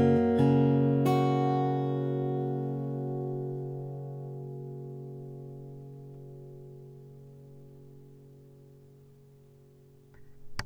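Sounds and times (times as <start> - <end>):
guitar picking: 0.0 - 10.6.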